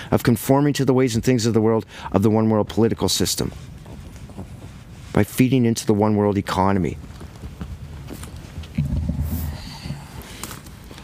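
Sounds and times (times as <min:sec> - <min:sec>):
speech: 0:00.1 - 0:03.8, 0:05.2 - 0:07.2
dog walking past the microphone: 0:03.4 - 0:05.4, 0:06.3 - 0:11.0.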